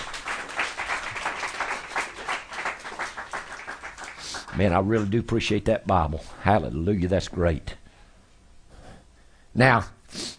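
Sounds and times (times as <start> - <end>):
crowd applauding: 0.0 - 4.7
speech: 4.6 - 7.7, 9.6 - 10.2.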